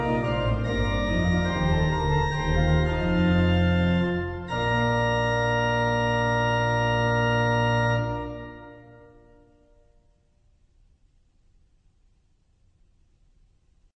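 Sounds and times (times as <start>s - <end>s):
classical organ: 0.0s - 10.0s.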